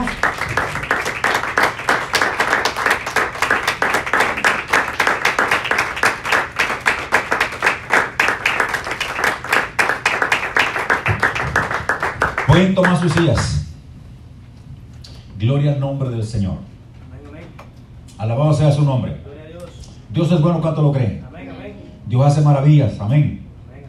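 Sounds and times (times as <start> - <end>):
audience rhythmic applause: 0.0 - 13.5
speech: 12.6 - 13.6, 15.4 - 16.7, 18.2 - 19.1, 20.2 - 21.2, 22.1 - 23.4.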